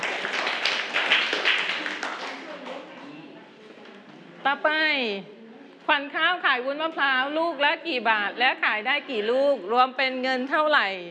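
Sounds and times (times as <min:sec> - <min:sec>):
group of children applauding together: 0:00.0 - 0:02.9
speech: 0:04.4 - 0:11.0.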